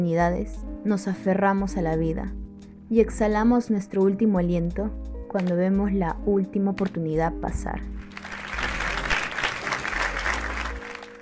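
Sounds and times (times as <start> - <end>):
speech: 0.0 - 8.0
audience applause: 8.0 - 11.2.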